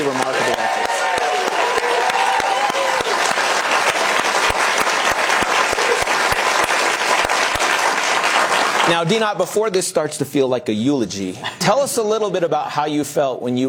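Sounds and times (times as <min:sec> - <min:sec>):
audience applause: 0:00.0 - 0:09.2
speech: 0:08.9 - 0:13.6.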